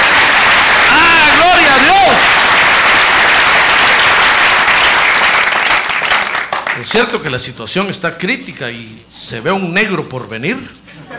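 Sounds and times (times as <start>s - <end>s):
audience applauding: 0.0s - 6.9s
speech: 6.9s - 11.1s.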